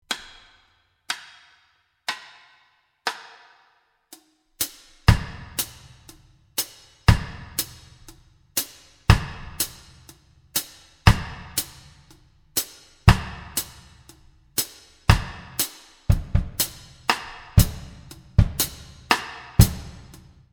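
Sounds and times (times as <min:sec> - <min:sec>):
reggae drum kit: 0:04.6 - 0:20.5.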